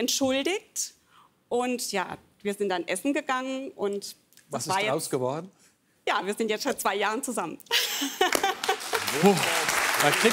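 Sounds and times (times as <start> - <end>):
speech: 0.0 - 8.5, 9.2 - 10.3
audience applause for a contestant on a Hessen quiz show: 8.5 - 10.3.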